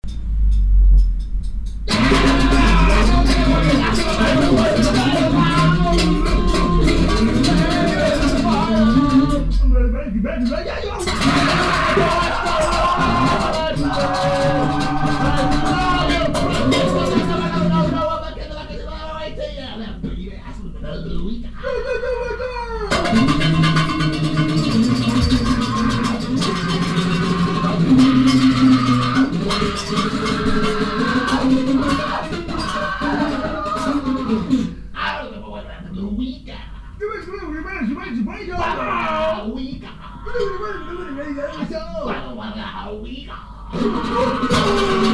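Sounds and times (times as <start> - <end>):
jazz music: 0.0 - 19.1, 22.9 - 34.8
laughter: 1.9 - 20.2, 21.2 - 34.8, 38.4 - 45.1.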